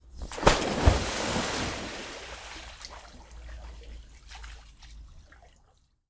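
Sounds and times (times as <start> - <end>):
big water splash from a pool jump: 0.2 - 3.2.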